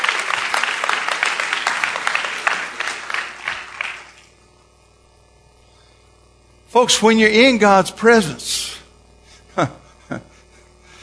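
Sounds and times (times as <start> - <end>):
audience applause: 0.0 - 4.4
speech: 6.8 - 8.8, 9.6 - 10.3.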